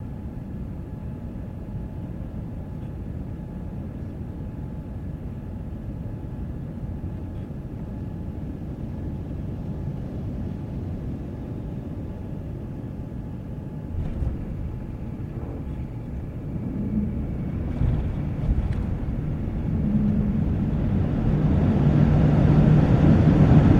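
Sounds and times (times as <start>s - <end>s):
airplane landing: 0.0s - 23.7s.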